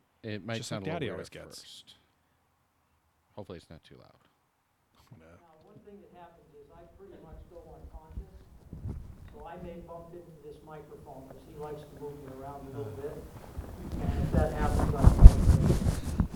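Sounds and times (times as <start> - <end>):
speech: 0.2 - 2.0, 3.4 - 4.3, 9.4 - 15.5
wind noise in a wind tunnel: 13.2 - 16.3.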